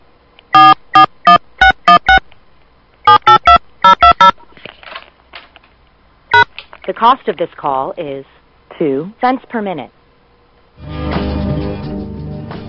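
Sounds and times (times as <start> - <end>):
touch-tone DTMF beeps dialing a phone number: 0.6 - 2.2, 3.1 - 4.4
speech: 7.0 - 10.0.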